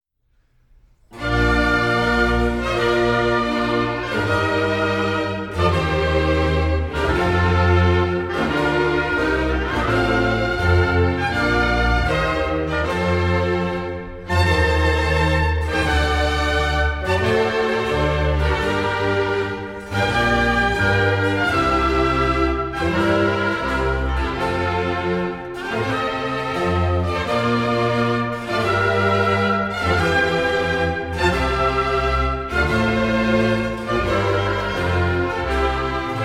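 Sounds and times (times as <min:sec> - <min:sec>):
baroque orchestral overture for double choir in B flat major: 0:00.4 - 0:36.2.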